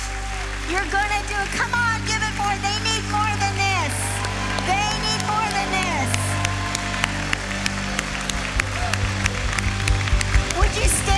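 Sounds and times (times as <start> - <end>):
audience applause and cheering: 0.0 - 11.1
speech: 0.7 - 3.4.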